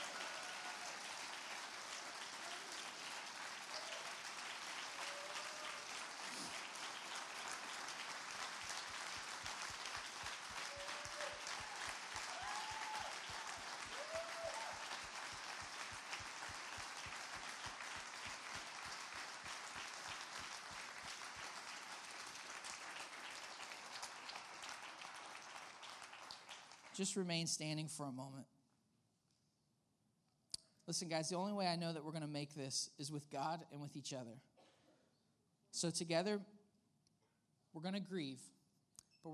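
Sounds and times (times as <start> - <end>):
cheers and whoops: 0.0 - 6.5, 10.5 - 15.1
audience applause: 0.0 - 27.1
speech: 27.0 - 28.5, 30.9 - 34.5, 35.8 - 36.6, 37.8 - 38.6.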